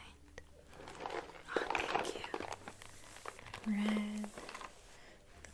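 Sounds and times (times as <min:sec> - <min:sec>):
gift wrapping paper crinkling and rustling as it is handled: 0:00.7 - 0:05.2
speech: 0:03.7 - 0:04.0.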